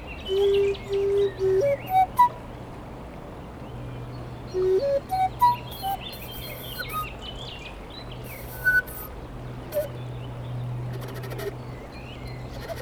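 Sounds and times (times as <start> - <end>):
Common Nightingale singing to defend its territory by the Leysse river in France: 0.0 - 2.4, 4.5 - 7.1, 8.3 - 9.1, 9.7 - 10.0.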